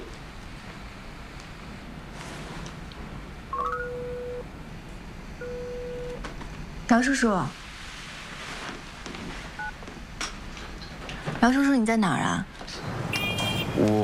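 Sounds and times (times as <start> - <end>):
long steady low phone ringing tones: 3.5 - 4.5, 5.4 - 6.2
speech: 6.9 - 7.6, 11.4 - 12.5, 13.8 - 14.0.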